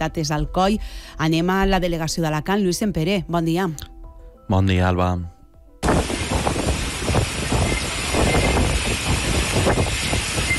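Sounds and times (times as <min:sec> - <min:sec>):
speech: 0:00.0 - 0:03.9, 0:04.5 - 0:06.1
strong wind from a short intense storm: 0:05.8 - 0:10.5.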